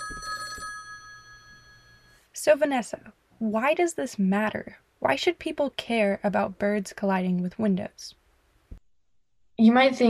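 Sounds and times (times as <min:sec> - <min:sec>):
telephone ringing: 0:00.0 - 0:02.2
speech: 0:02.4 - 0:08.2, 0:09.6 - 0:10.0.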